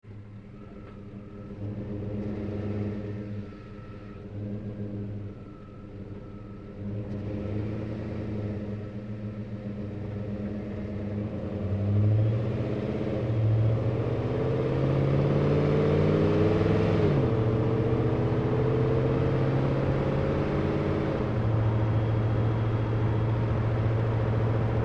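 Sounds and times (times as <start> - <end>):
GMC Savana truck onboard driving corners with fast idle: 0.0 - 24.8.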